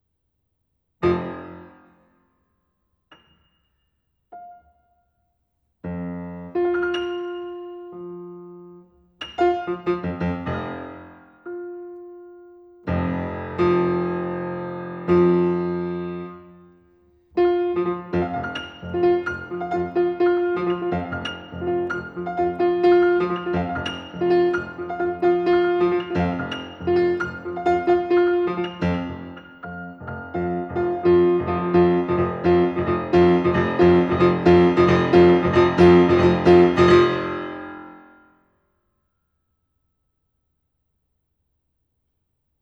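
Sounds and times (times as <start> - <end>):
piano prelude and waltz: 1.0 - 2.2, 4.3 - 5.1, 5.8 - 38.3.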